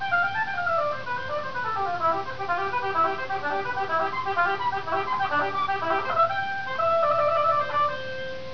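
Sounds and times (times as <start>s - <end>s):
oboe: 0.0s - 8.5s.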